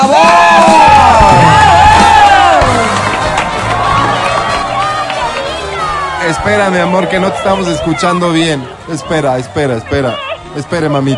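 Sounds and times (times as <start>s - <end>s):
crowd cheering and shouting: 0.0s - 11.1s
steady clapping: 2.6s - 6.0s
speech: 6.5s - 11.1s.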